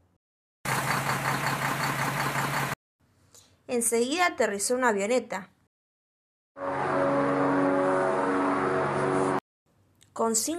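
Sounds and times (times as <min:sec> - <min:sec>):
truck engine rumbling: 0:00.7 - 0:02.8, 0:06.6 - 0:09.4
speech: 0:03.7 - 0:05.6, 0:10.2 - 0:10.5.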